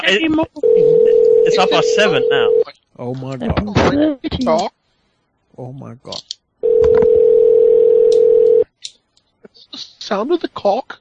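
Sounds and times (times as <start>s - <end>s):
speech: 0.1s - 4.8s, 5.6s - 7.2s, 9.7s - 10.9s
telephone ringing on an unanswered call: 0.6s - 2.6s, 6.6s - 8.6s.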